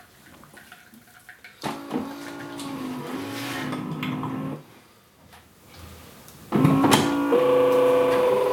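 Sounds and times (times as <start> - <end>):
coffee machine whirring and humming: 1.6 - 4.6, 6.6 - 8.5.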